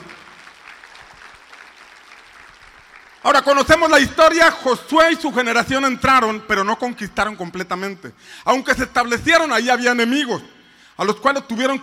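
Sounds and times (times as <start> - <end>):
crowd applause: 0.0 - 3.2
speech: 3.3 - 11.8.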